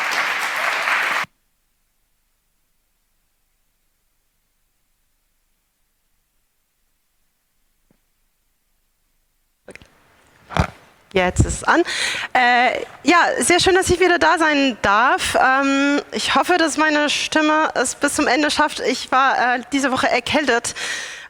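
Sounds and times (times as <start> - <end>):
audience applause: 0.0 - 1.3
speech: 11.1 - 21.2.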